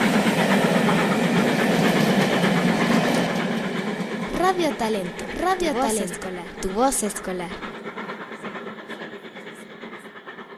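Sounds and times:
train passing on railway: 0.0s - 10.5s
speech: 4.6s - 7.7s.

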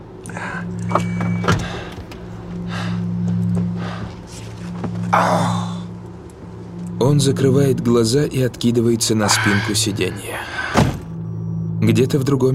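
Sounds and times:
low hum: 0.0s - 12.5s
door of a car parked at a city curb clicking open: 0.8s - 2.2s
speech: 5.2s - 5.6s, 7.0s - 10.9s, 11.9s - 12.5s
thump: 10.7s - 11.0s.

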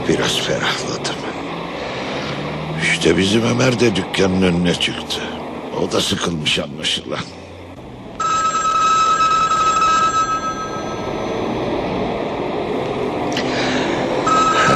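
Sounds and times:
steady rumble: 0.0s - 14.7s
speech: 0.3s - 1.4s, 2.8s - 7.4s
telephone bell ringing: 8.2s - 11.7s, 14.2s - 14.7s.

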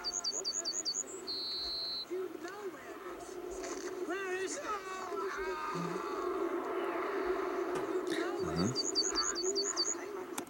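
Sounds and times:
faint bird chirps: 0.0s - 10.3s
yellowhammer singing: 0.0s - 10.4s
low steady rumble: 2.2s - 10.4s.

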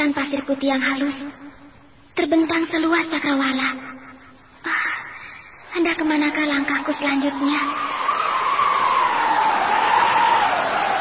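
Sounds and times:
speech: 0.0s - 1.6s, 2.2s - 4.0s, 4.6s - 4.9s, 5.7s - 8.0s
strong wind howling: 6.7s - 10.9s.

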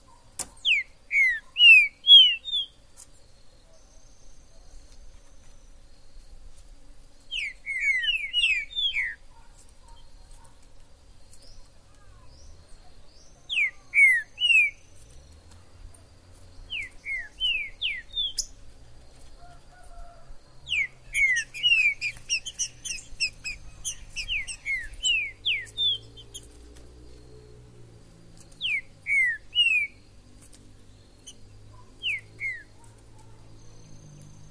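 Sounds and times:
other birds chirping: 0.0s - 34.5s
green-winged saltator whistling song: 7.4s - 9.2s, 13.5s - 14.8s, 16.7s - 18.6s, 20.7s - 26.4s, 28.6s - 30.0s.

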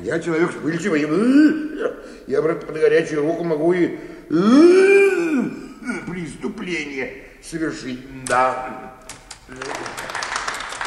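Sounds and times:
speech: 0.0s - 5.0s, 6.1s - 10.2s
bank employees applauding: 9.4s - 10.8s.

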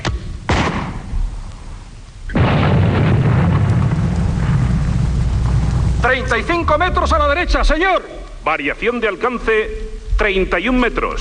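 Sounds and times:
artillery guns firing radio drama sound effect: 0.5s - 1.1s, 2.3s - 5.7s
loud sustained roaring rumble: 2.4s - 8.4s
speech: 6.1s - 11.1s.

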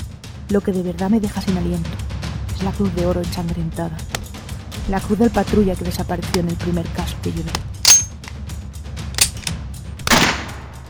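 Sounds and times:
speech: 0.5s - 2.0s, 2.6s - 4.2s, 4.8s - 7.7s
gunshot: 10.1s - 10.8s.

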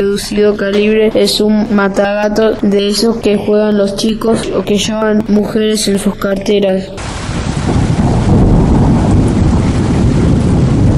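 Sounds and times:
speech: 0.0s - 7.8s
thunderstorm with rolling thunder: 7.0s - 10.9s.

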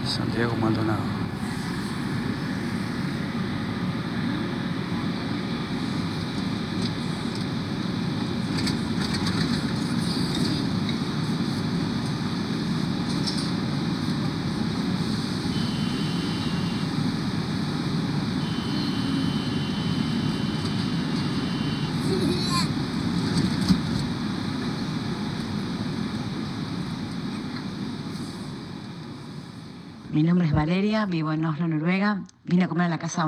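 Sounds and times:
subway train running: 0.0s - 32.0s
speech: 0.2s - 1.2s, 30.6s - 33.2s.

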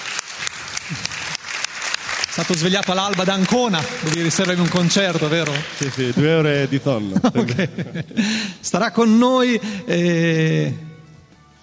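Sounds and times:
audience applause: 0.0s - 7.1s
speech: 2.4s - 10.9s
laughter: 4.1s - 8.7s.

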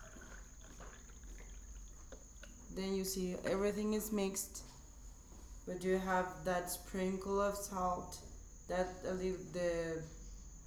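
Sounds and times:
beer poured into a stein holding drops of Maggi: 0.0s - 2.7s
speech: 2.7s - 4.7s, 5.6s - 10.2s.

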